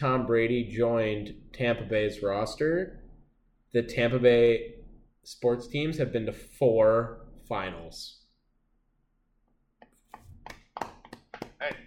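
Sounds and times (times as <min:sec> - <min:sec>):
speech: 0:00.0 - 0:03.0, 0:03.7 - 0:08.2
muffled clapping with bandaged thumb: 0:10.4 - 0:11.8.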